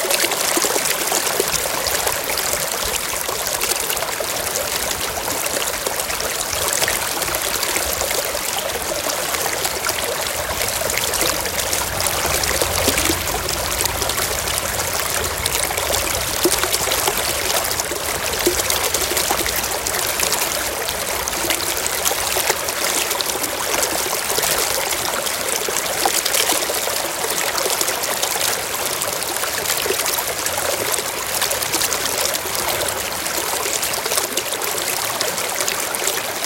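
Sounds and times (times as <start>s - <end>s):
running stream water at a pond: 0.0s - 36.4s.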